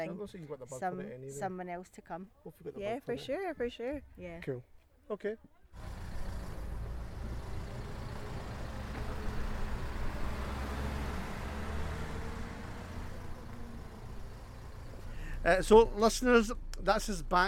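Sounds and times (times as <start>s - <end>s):
speech: 0.0s - 6.0s, 15.4s - 17.4s
minibus engine and road rumble: 5.7s - 17.4s.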